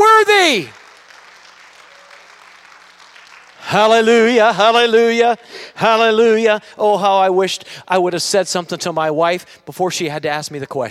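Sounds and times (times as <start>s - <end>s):
audience clapping hands: 0.0s - 5.0s
speech: 0.5s - 0.8s, 3.7s - 10.8s.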